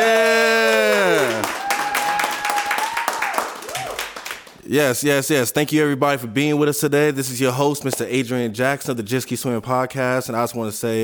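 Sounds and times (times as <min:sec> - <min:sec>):
round of applause: 0:00.0 - 0:04.6
speech: 0:04.7 - 0:11.0.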